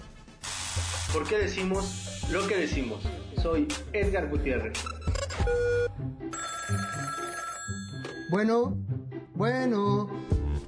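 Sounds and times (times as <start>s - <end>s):
speech: 1.1s - 7.2s, 8.3s - 10.2s
telephone ringing: 5.4s - 8.4s.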